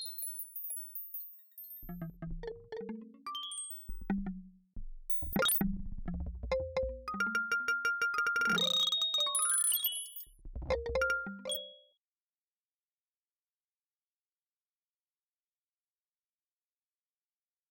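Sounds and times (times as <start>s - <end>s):
arpeggiated xylophone in a house style: 1.8s - 4.4s, 5.2s - 9.6s, 10.6s - 11.8s.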